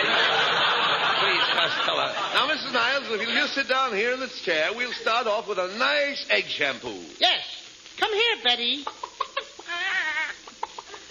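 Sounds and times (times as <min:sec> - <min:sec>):
laughter: 0:00.0 - 0:03.7, 0:08.8 - 0:11.1
speech: 0:01.6 - 0:09.1
chicken clucking and squawking: 0:08.8 - 0:11.1.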